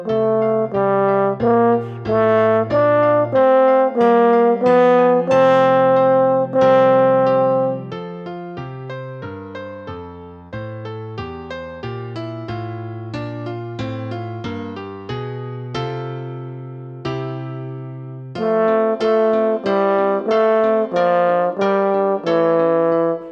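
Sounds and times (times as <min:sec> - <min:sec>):
French horn solo melody: 0:00.0 - 0:08.0, 0:18.4 - 0:23.2
piano accompaniment: 0:00.0 - 0:23.2.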